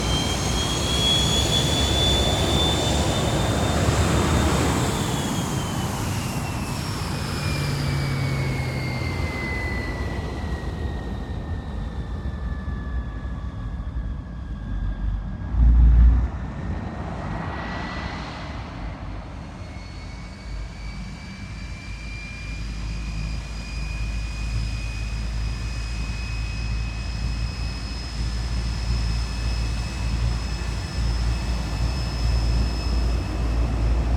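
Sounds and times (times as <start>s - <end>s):
MiG-15 UTI jet aircraft departing: 0.0s - 34.1s.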